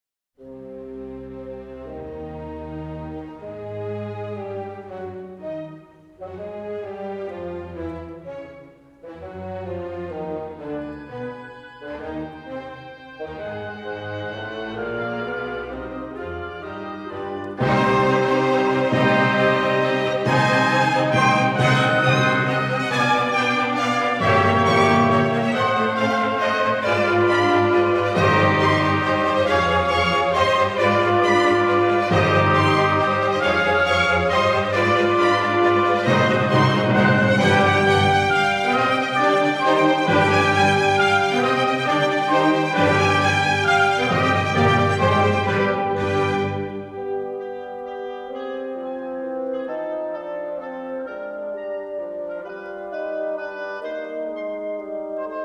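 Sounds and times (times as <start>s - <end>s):
piano concerto in C minor: 0.4s - 55.4s.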